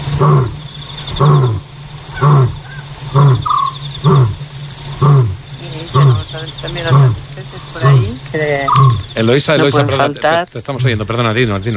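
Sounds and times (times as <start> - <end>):
African lion roaring at night: 0.0 - 4.4, 5.0 - 9.3
high insect drone: 0.0 - 11.7
speech: 0.2 - 0.6, 9.2 - 11.7.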